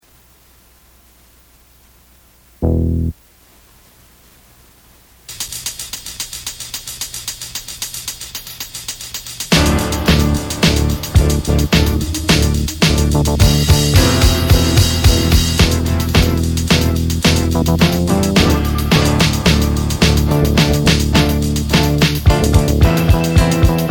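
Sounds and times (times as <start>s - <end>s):
hard bop jazz: 2.6s - 3.2s, 9.5s - 23.8s.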